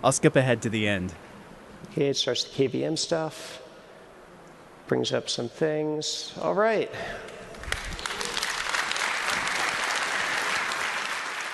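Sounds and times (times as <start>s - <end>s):
speech: 0.0s - 1.3s, 1.9s - 3.6s, 4.9s - 7.4s
audience applauding: 7.5s - 11.5s.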